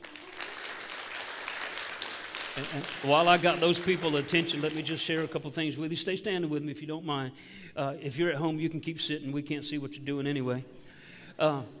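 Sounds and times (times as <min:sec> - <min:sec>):
audience applauding newcomers at a gathering at Coastal: 0:00.0 - 0:05.4
speech: 0:02.6 - 0:10.8, 0:11.4 - 0:11.7.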